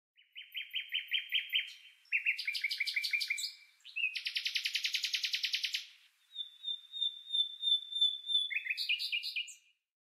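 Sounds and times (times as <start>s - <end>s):
common nightingale singing: 0.2s - 9.8s.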